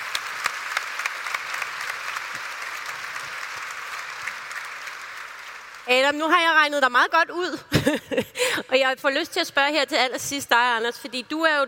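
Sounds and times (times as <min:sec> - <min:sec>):
audience applause: 0:00.0 - 0:05.9
speech: 0:05.9 - 0:11.6.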